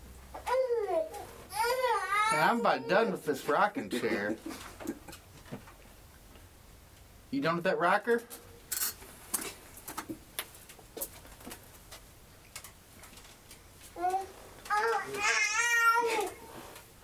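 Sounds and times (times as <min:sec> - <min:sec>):
fussy baby babbling and whining: 0:00.4 - 0:03.2, 0:14.0 - 0:16.5
speech: 0:02.4 - 0:04.7, 0:07.3 - 0:08.4.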